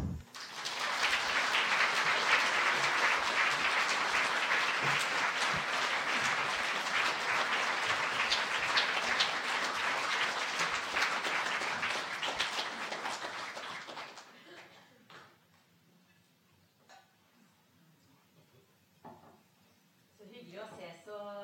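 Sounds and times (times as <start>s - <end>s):
warm audience applause welcoming speakers on stage: 0.0s - 14.8s.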